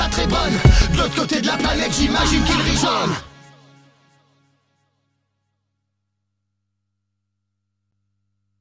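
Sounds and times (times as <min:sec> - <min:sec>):
chanting on a bus: 0:00.0 - 0:03.4.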